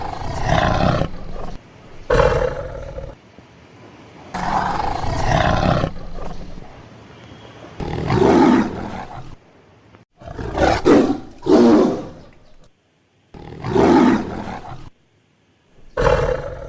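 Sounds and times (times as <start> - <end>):
tiger roaring: 0.0 - 3.2, 4.4 - 6.8, 7.8 - 9.4, 10.2 - 12.7, 13.4 - 14.9, 15.8 - 16.6.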